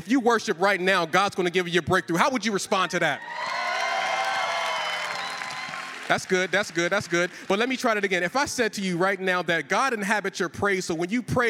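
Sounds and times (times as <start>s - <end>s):
speech: 0.1s - 3.6s, 6.1s - 11.4s
audience clapping: 3.2s - 8.3s.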